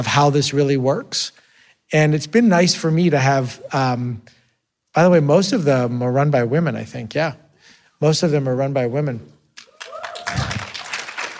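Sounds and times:
speech: 0.0 - 4.4, 5.0 - 7.4, 8.0 - 9.3
audience members clapping: 9.6 - 11.3.

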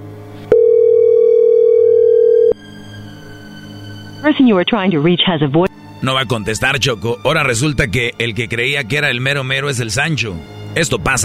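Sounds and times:
telephone call ringing tone: 0.5 - 2.6
speech: 4.3 - 11.2.

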